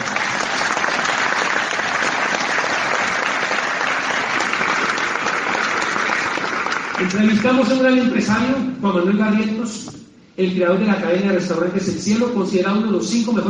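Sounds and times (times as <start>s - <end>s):
applause: 0.0s - 8.0s
speech: 7.0s - 13.4s.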